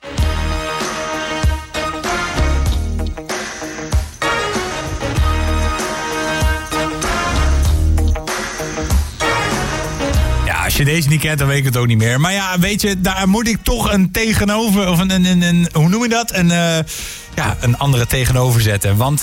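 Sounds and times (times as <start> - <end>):
pop-rock song played from a special-edition vinyl record: 0.0 - 14.0
speech: 10.8 - 19.2.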